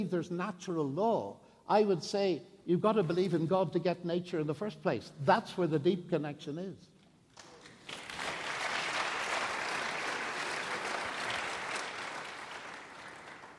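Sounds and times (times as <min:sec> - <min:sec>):
speech: 0:00.0 - 0:06.9
audience clapping: 0:07.3 - 0:13.5.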